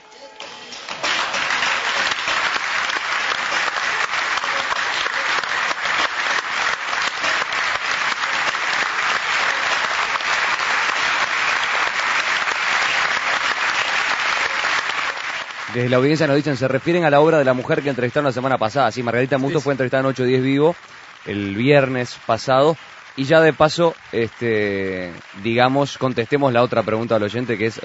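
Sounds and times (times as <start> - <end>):
audience applauding after a theatre show: 0.0 - 27.8
speech: 15.8 - 27.8.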